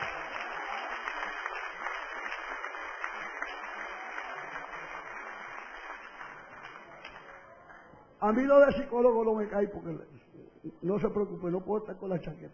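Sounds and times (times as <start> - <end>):
audience applause: 0.0 - 7.9
speech: 8.2 - 12.5.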